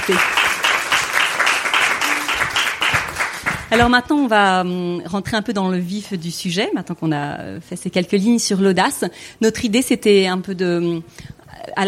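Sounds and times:
speech: 0.0s - 0.4s, 3.7s - 11.8s
audience applause: 0.0s - 3.7s.

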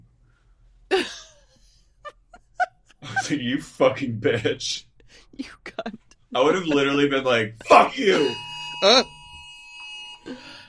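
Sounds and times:
low hum: 0.0s - 10.6s
speech: 3.3s - 9.1s
phone emergency alert tone: 8.0s - 10.4s.

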